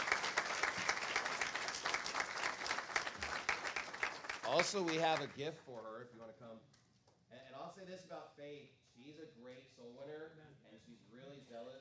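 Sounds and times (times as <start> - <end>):
audience applause: 0.0 - 5.6
speech: 4.5 - 6.8, 7.6 - 11.7.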